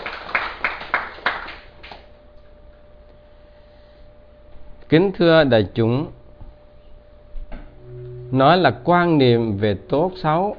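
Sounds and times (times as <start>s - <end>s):
audience applause: 0.0s - 2.0s
speech: 4.9s - 6.2s, 8.3s - 10.5s.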